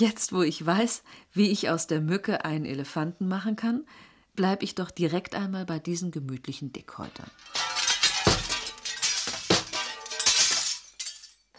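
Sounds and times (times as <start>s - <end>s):
speech: 0.0s - 7.7s
porcelain shattering: 7.1s - 11.5s
shards tinkling: 7.3s - 11.5s.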